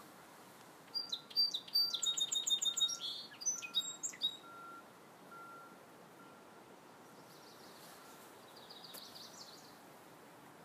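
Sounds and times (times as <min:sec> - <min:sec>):
song sparrow singing: 0:00.9 - 0:04.6, 0:07.0 - 0:09.8.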